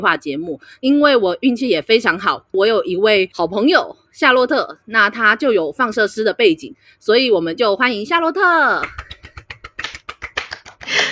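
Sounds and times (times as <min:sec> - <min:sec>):
speech: 0:00.0 - 0:09.1
hand clapping: 0:08.8 - 0:11.0.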